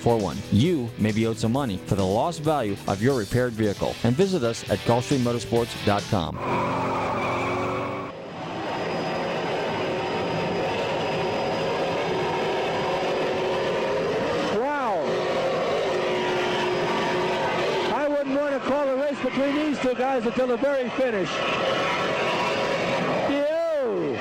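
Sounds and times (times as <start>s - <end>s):
speech: 0.0s - 6.9s, 19.8s - 22.4s
offshore racing powerboat engines roaring: 4.0s - 24.1s.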